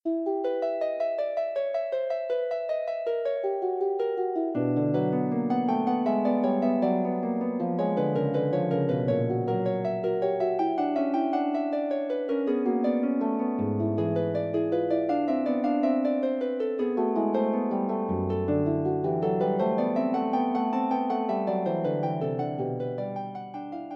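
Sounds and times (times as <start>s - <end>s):
harp playing a fugue: 0.0s - 23.9s.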